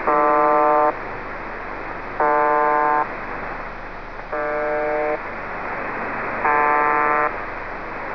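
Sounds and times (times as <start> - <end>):
buzzer: 0.1 - 0.9, 2.2 - 3.1, 4.3 - 5.2, 6.4 - 7.3.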